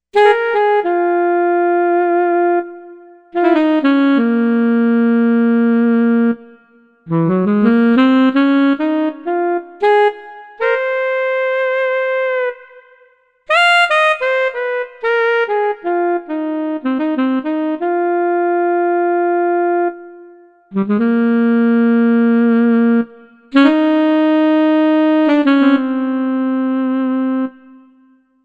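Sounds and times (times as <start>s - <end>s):
alto saxophone: 0.1s - 28.2s.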